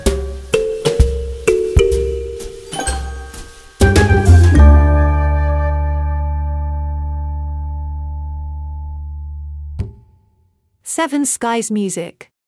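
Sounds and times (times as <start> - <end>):
light comedy music: 0.0 - 7.7.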